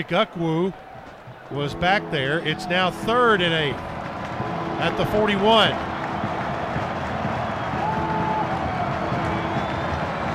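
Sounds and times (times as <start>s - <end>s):
speech: 0.0s - 0.9s, 1.5s - 3.9s, 4.8s - 5.9s
near capacity stadium crowd cheering loudly: 0.0s - 10.3s.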